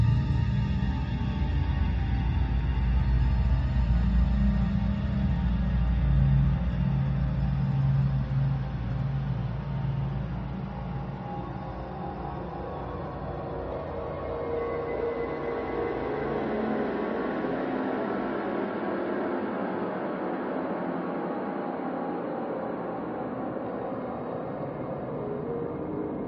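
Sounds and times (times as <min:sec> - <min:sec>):
dreamy horror atmosphere evolving into a dark nightmare: 0:00.0 - 0:26.2.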